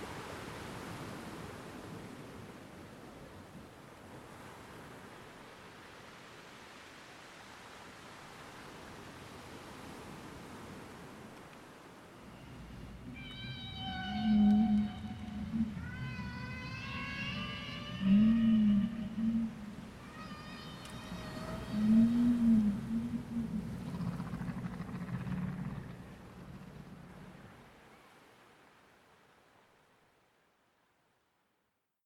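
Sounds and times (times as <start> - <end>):
ocean whale song: 12.1 - 27.0.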